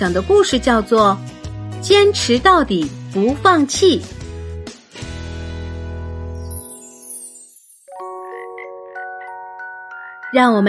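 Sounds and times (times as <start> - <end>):
speech: 0.0 - 4.2, 10.3 - 10.6
light tinkling chime melody: 6.3 - 10.6
frog croaking: 8.1 - 10.2.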